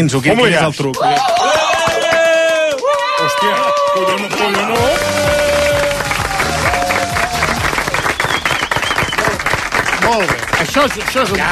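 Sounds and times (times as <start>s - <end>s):
speech: 0.0s - 1.9s, 3.2s - 5.7s, 10.1s - 11.5s
two people clapping: 0.7s - 11.5s.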